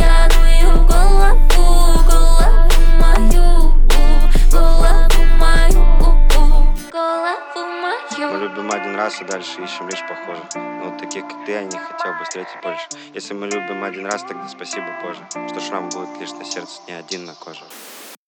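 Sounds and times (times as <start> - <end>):
23-26Hz low bass tone: 0.0 - 6.9.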